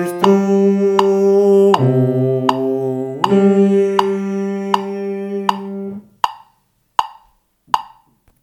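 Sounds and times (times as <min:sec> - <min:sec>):
bass voice singing a sacred song: 0:00.0 - 0:06.0.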